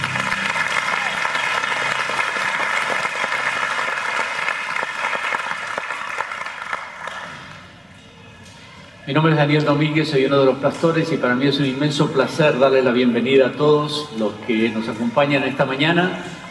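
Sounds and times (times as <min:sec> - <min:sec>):
audience applauding: 0:00.0 - 0:07.7
speech: 0:09.1 - 0:16.3.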